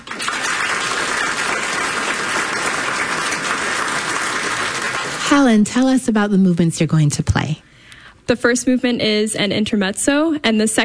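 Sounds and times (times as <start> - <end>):
audience applause welcoming an 18-year-old pianist: 0.0 - 5.4
speech: 5.3 - 7.6, 8.3 - 10.8.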